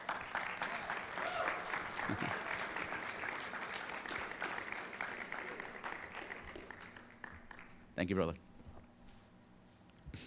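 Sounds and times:
audience applause: 0.0s - 7.9s
laughter: 1.8s - 3.2s
speech: 2.1s - 2.4s, 8.0s - 8.5s.

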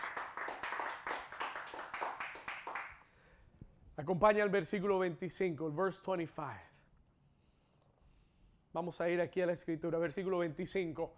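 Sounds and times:
crowd clapping: 0.0s - 3.1s
speech: 4.0s - 6.7s, 8.8s - 11.1s.

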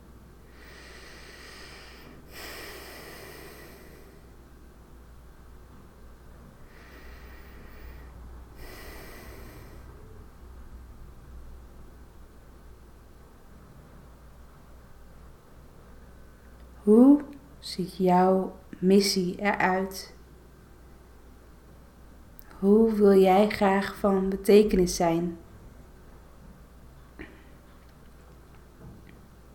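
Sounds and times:
faint steady hiss: 0.0s - 29.5s
deep breaths during a guided eyes-closed exercise: 0.4s - 4.5s, 6.5s - 10.3s
speech: 16.9s - 20.2s, 22.6s - 25.4s.

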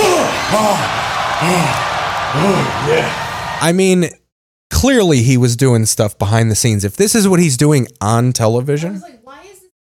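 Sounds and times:
wrestling crowd cheering: 0.0s - 4.0s
speech: 0.5s - 4.2s, 4.8s - 9.4s.

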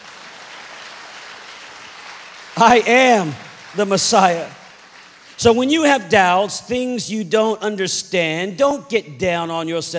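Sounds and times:
crowd clapping: 0.0s - 5.9s
speech: 2.6s - 4.6s, 5.4s - 9.9s.

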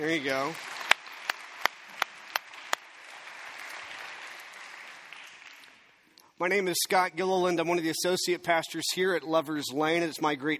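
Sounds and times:
speech: 0.0s - 0.8s, 6.4s - 10.5s
audience clapping: 0.0s - 6.1s
scattered applause from a crowd: 0.0s - 6.1s.

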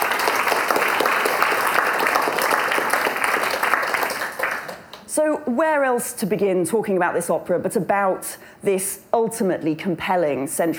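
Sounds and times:
audience applauding panel guests at an opera discussion event: 0.0s - 5.0s
speech: 5.3s - 10.7s.

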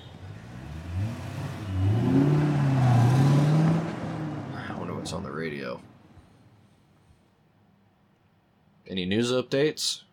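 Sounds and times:
car engine accelerating while turning off: 0.0s - 6.2s
road noise: 0.0s - 7.0s
speech: 9.0s - 10.1s.

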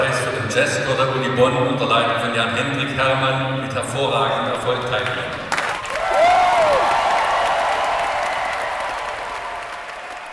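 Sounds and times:
speech: 0.6s - 5.5s
crowd applause: 5.5s - 10.3s.

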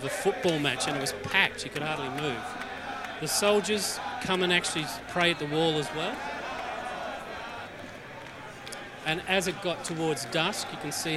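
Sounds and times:
speech: 0.0s - 2.6s, 3.2s - 6.3s, 9.0s - 11.1s
crowd chanting at the wall: 0.0s - 11.1s.

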